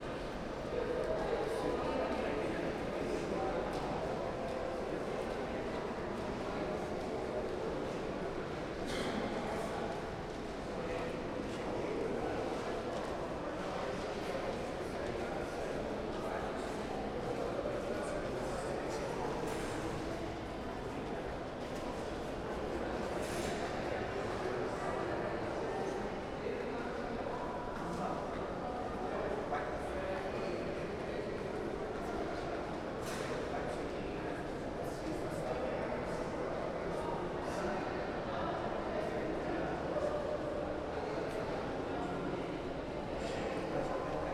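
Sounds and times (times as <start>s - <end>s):
people in the hall of the Câmara dos Deputados annex 2 entrance ramp: 0.0s - 44.3s.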